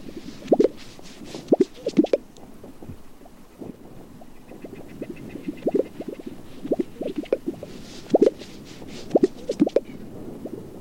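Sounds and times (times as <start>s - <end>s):
Gunnison sage grouse calling: 2.8s - 10.1s.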